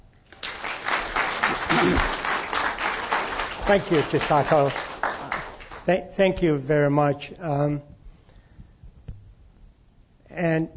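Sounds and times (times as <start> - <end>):
audience applause welcoming a speaker to an evening talk: 0.3 - 5.9
speech: 1.8 - 2.2, 3.7 - 4.9, 5.8 - 7.9, 10.4 - 10.7.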